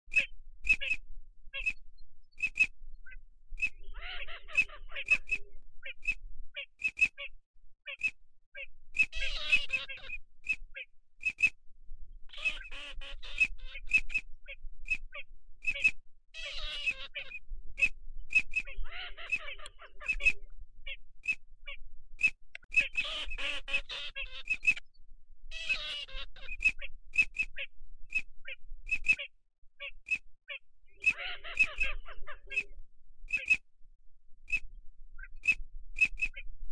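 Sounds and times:
ducks calling: 0.1 - 1.0, 2.4 - 11.5, 12.3 - 14.2, 14.9 - 24.8, 25.5 - 30.2, 31.0 - 33.6.

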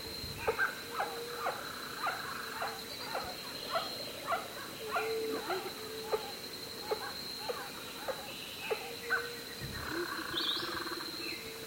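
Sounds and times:
White-winged guan calling: 0.4 - 11.5.

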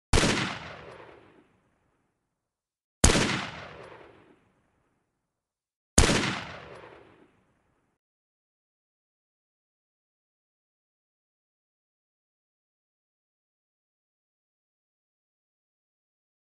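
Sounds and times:
Arisaka rifle: 0.1 - 2.2, 3.0 - 5.2, 6.0 - 8.0.

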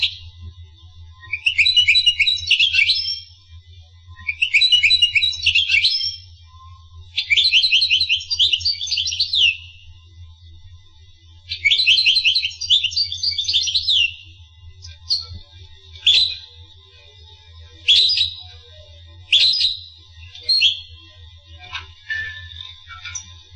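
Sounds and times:
finch singing: 1.3 - 3.2, 4.3 - 6.3, 7.2 - 9.7, 11.5 - 14.2, 16.0 - 16.6, 17.8 - 18.5, 19.3 - 23.4.

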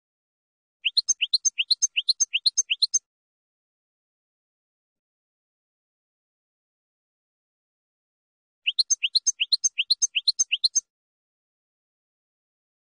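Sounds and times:
finch song: 0.8 - 3.1, 8.6 - 10.9.

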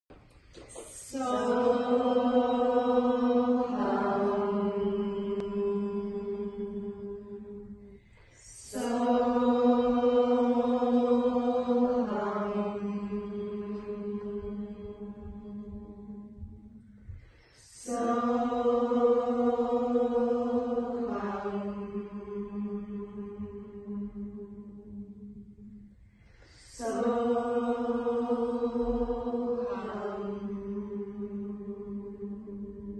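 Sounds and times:
mantra chanting: 0.8 - 32.9.

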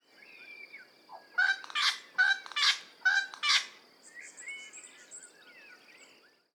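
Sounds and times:
wattlebird harsh cackling calls: 1.4 - 3.8.

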